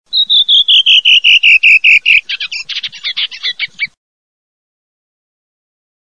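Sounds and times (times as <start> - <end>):
redwing singing: 0.1 - 4.0.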